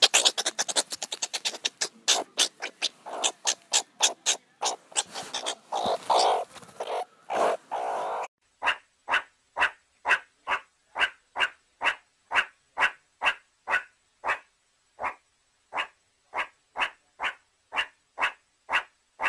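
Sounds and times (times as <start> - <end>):
meerkat giving quick harsh barks: 0.0 - 19.2.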